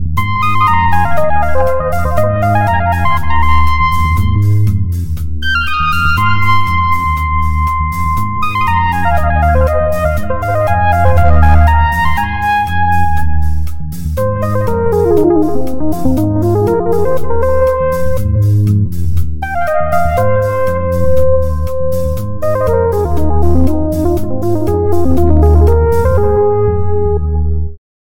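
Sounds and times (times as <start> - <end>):
synth lead: 0.0 - 27.8.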